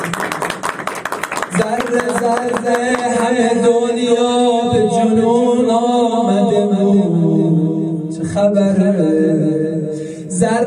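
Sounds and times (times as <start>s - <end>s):
audience clapping at a night celebration of the birth of Imam Ali: 0.0s - 3.5s
speech: 1.6s - 7.4s, 8.2s - 9.7s.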